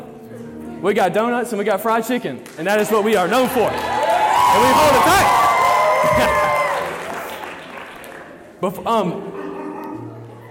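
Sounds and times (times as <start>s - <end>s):
speech: 0.8s - 5.4s, 8.6s - 9.3s
crowd applauding and cheering: 2.4s - 8.5s.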